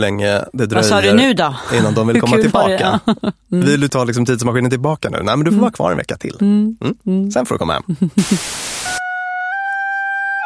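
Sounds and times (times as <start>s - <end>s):
speech: 0.0s - 9.1s
simple homemade bagpipe built with a recorder playing: 8.8s - 10.4s.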